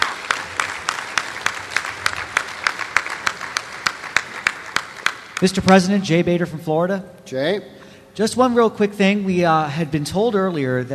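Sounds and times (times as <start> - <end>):
round of applause: 0.0 - 5.9
speech: 5.4 - 10.9.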